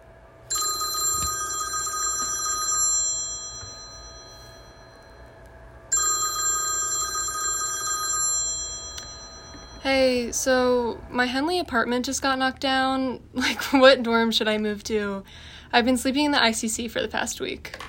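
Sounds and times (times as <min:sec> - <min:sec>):
quiet hum: 0:00.0 - 0:17.8
telephone ringing with a trilling electronic bell: 0:00.5 - 0:10.3
speech: 0:09.9 - 0:17.8.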